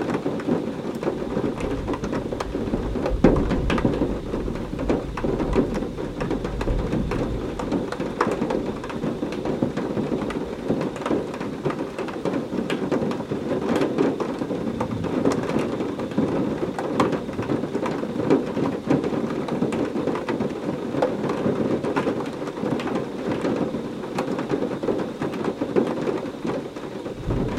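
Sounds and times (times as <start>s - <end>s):
large raindrops: 0.0s - 27.5s
thunder rumbling: 1.0s - 12.1s, 14.2s - 18.3s, 27.0s - 27.5s.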